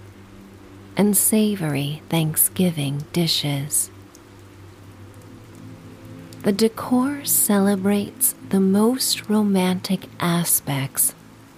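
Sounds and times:
steady rain: 0.0 - 11.5
speech: 1.0 - 4.0, 6.4 - 11.2.

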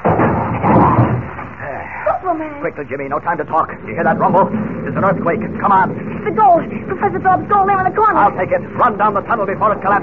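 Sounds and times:
heavy wooden door broken down: 0.0 - 1.6
speech: 2.3 - 10.0.

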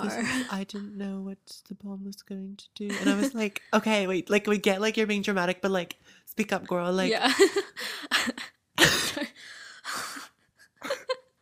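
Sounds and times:
speech: 0.0 - 10.0
person coughing, choking on breath: 8.8 - 9.4.

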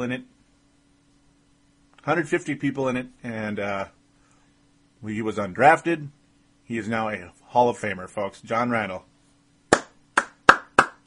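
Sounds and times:
speech: 0.0 - 0.4, 2.0 - 4.0, 5.0 - 9.1
faint low hum: 0.0 - 11.0
sharp hand claps: 9.7 - 11.0.

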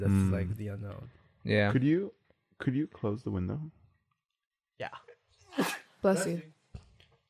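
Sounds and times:
speech: 0.0 - 3.8, 4.8 - 6.6
sneeze: 5.5 - 6.0.

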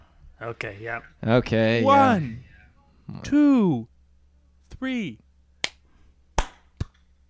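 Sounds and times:
faint steady low hum: 0.0 - 7.2
speech: 0.4 - 2.5, 3.1 - 3.9, 4.7 - 5.2
sharp group hand claps for sync: 5.6 - 5.8, 6.4 - 7.0.

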